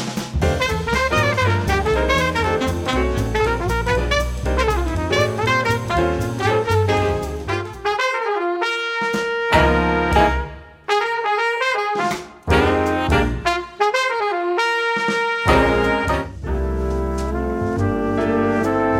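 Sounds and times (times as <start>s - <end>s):
jazz music: 0.2s - 18.9s.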